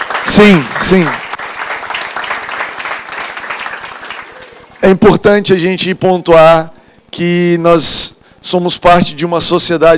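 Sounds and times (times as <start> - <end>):
audience applause: 0.0 - 4.8
speech: 0.3 - 1.2, 4.8 - 9.9.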